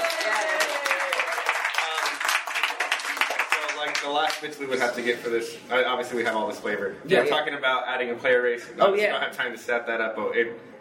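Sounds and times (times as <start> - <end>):
round of applause: 0.0 - 4.5
speech: 4.0 - 10.8.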